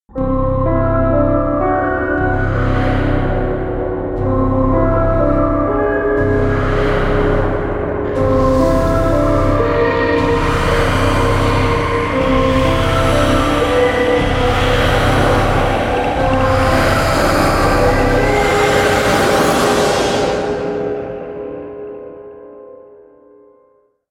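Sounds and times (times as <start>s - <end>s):
horror music: 0.1s - 23.0s.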